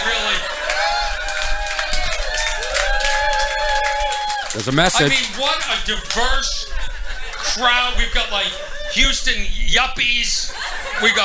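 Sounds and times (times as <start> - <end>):
laughter: 0.0 - 1.6, 4.4 - 11.2
audience cheering: 0.0 - 6.9
speech: 4.6 - 6.8, 7.4 - 11.2.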